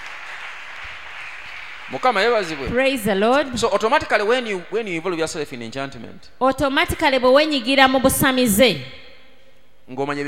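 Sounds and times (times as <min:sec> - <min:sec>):
church congregation clapping in praise during a sermon: 0:00.0 - 0:04.4
speech: 0:01.9 - 0:09.0, 0:09.9 - 0:10.2.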